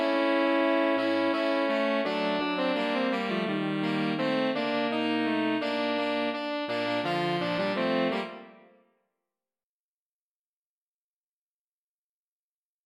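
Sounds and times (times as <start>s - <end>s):
saxophone quintet: 0.0s - 8.8s.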